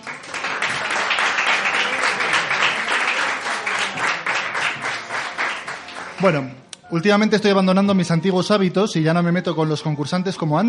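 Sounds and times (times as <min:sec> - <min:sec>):
crowd applauding: 0:00.0 - 0:06.6
speech: 0:06.2 - 0:10.6.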